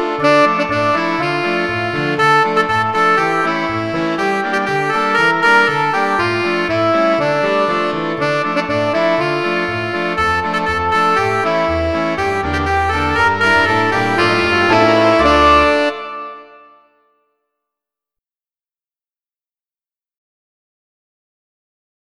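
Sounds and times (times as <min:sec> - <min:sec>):
backing music: 0:00.1 - 0:07.4, 0:08.2 - 0:16.6.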